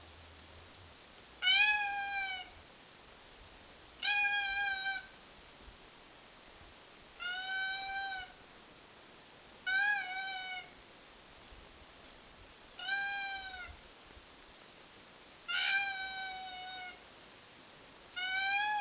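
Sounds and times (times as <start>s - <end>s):
female koala screeching: 1.4s - 2.5s, 4.0s - 5.1s, 7.2s - 8.4s, 9.7s - 10.7s, 12.8s - 13.8s, 15.5s - 17.0s, 18.2s - 18.8s.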